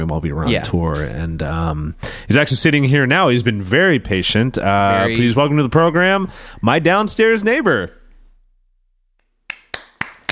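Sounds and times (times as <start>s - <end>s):
speech: 0.0s - 8.0s
person clapping: 9.2s - 10.2s.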